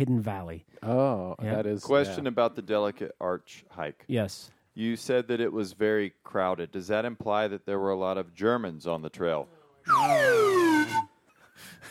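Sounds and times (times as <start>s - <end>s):
speech: 0.0s - 11.8s
whistle blown: 9.9s - 11.2s.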